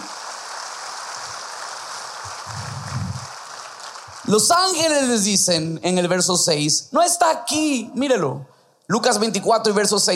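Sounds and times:
audience applauding: 0.0 - 5.4
speech: 4.3 - 10.1.

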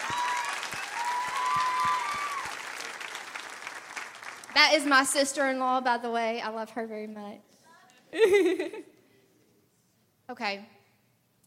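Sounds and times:
audience applause: 0.0 - 4.9
speech: 4.6 - 7.5, 8.1 - 8.9, 10.3 - 10.8
laughter: 8.1 - 9.0.

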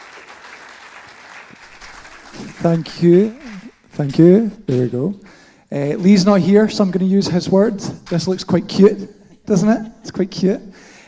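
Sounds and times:
applause: 0.0 - 4.0
speech: 2.3 - 3.4, 4.0 - 11.0.

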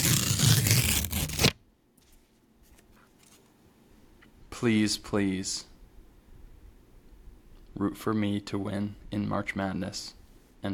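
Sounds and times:
paper check being torn: 0.0 - 1.6
speech: 4.6 - 5.7, 7.8 - 10.7.

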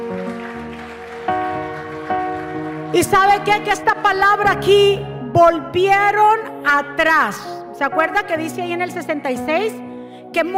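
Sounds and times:
audience applauding loudly: 0.0 - 4.1
speech: 3.0 - 10.5.

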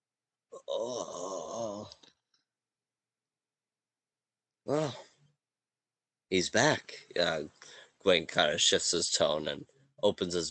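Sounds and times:
human voice performing a quiet groan from a creature inside a backpack: 0.5 - 2.0, 4.7 - 5.1
speech: 0.7 - 2.0, 6.3 - 10.4.

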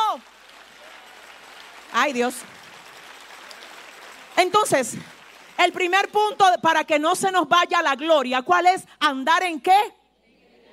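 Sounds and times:
audience applause: 0.0 - 6.1
speech: 1.9 - 2.6, 4.4 - 10.0.

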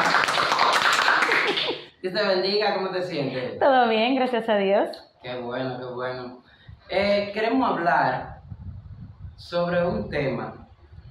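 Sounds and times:
crowd clapping: 0.0 - 1.9
speech: 2.1 - 8.3, 9.4 - 10.6.

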